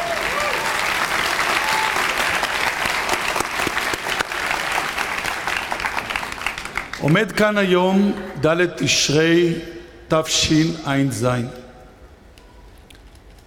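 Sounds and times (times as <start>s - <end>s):
crowd applauding: 0.0s - 7.2s
speech: 7.0s - 11.6s.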